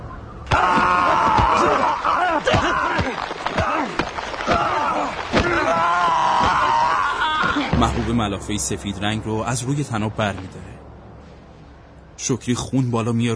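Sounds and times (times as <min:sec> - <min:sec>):
punches and kicks of three village men beating someone in a radio drama: 0:00.4 - 0:08.8
pained groans and strained cries: 0:00.5 - 0:07.8
speech: 0:07.9 - 0:10.7, 0:12.2 - 0:13.3.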